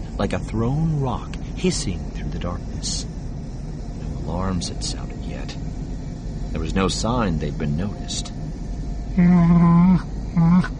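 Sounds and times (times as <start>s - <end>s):
speech: 0.2s - 3.1s, 4.3s - 5.7s, 6.5s - 8.4s, 9.2s - 10.7s
Chewbacca the Wookiee from Star Wars grunting and moaning: 9.2s - 10.7s.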